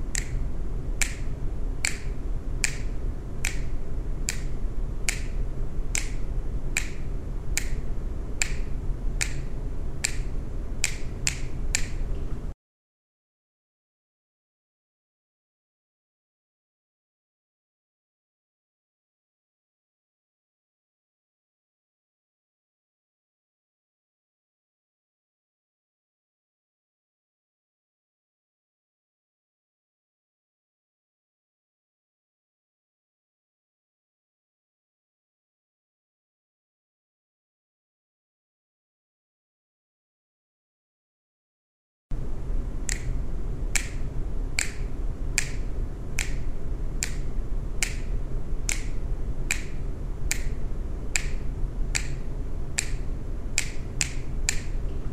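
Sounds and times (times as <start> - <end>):
finger snaps: 0.1 - 12.3, 42.9 - 43.2, 43.7 - 55.0.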